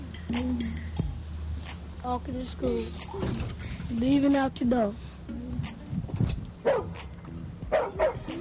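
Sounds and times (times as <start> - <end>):
speech: 0.3 - 1.0, 2.0 - 5.6
dog barking: 6.6 - 7.0, 7.7 - 8.3.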